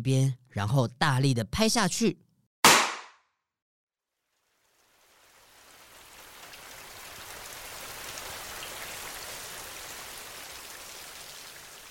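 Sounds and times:
speech: 0.0s - 2.2s
rain falling: 4.3s - 11.8s.

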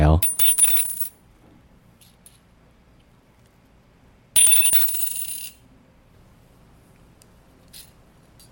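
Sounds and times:
ten-yuan coin dropping with metallic ring: 0.2s - 1.2s, 4.4s - 5.6s.

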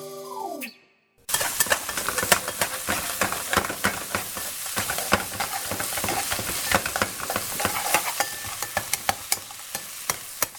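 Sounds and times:
sharp clicks and clatters: 1.3s - 9.4s
food sizzling in a hot pan: 1.3s - 10.5s.

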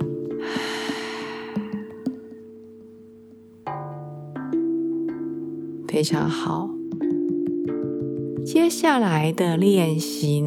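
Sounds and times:
steady sustained tones: 0.0s - 10.4s
slow exhale through the mouth in a bedtime breathing exercise: 0.4s - 1.9s
speech: 6.0s - 6.8s, 8.5s - 10.4s.

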